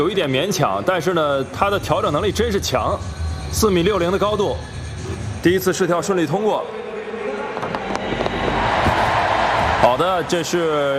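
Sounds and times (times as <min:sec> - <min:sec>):
speech: 0:00.0 - 0:06.8, 0:09.8 - 0:10.9
home crowd cheering at a pole vault competition: 0:07.5 - 0:10.9.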